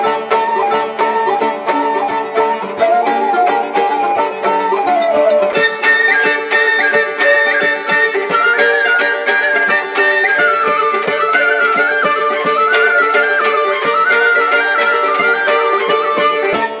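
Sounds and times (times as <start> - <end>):
flute: 0.0 - 16.7.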